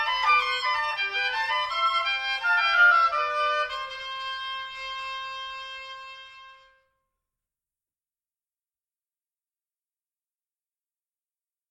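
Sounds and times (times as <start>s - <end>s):
rigaudon oboe duet: 0.0s - 6.8s.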